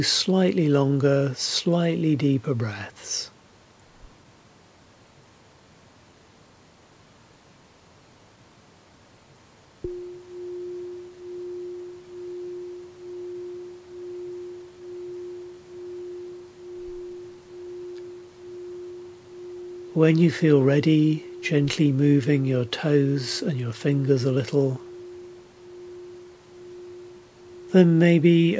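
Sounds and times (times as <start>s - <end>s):
speech: 0.0s - 3.3s, 20.0s - 24.9s, 27.7s - 28.5s
meditation bell ringing: 9.9s - 28.5s.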